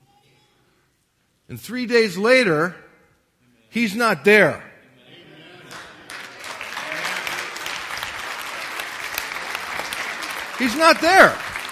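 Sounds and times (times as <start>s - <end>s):
speech: 1.5s - 2.8s, 3.7s - 4.7s, 10.6s - 11.4s
crowd applause: 5.7s - 11.7s.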